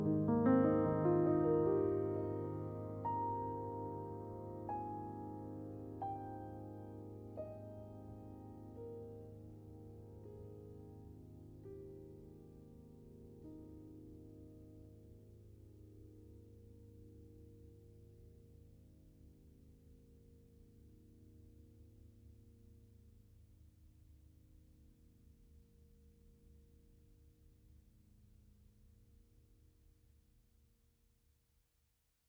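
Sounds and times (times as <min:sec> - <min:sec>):
solo piano music: 0:00.0 - 0:17.4.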